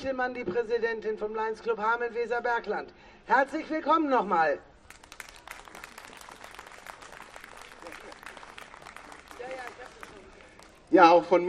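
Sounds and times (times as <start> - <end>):
speech: 0.0 - 4.7, 10.9 - 11.4
audience applauding: 4.8 - 10.9.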